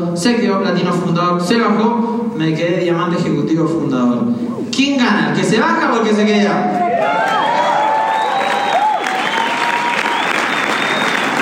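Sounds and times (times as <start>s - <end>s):
speech: 0.1s - 7.6s
high voices whooping and cheering: 6.6s - 11.2s
crowd applause: 6.9s - 11.4s.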